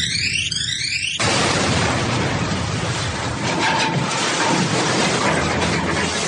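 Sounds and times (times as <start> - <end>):
starship Poofwanian crash-landing into a high tower of Hogwarts: 0.0 - 6.1.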